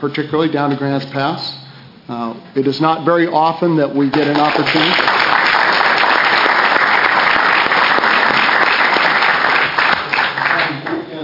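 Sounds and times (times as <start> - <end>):
speech: 0.0 - 5.1
audience clapping during committee hearing: 4.1 - 11.1.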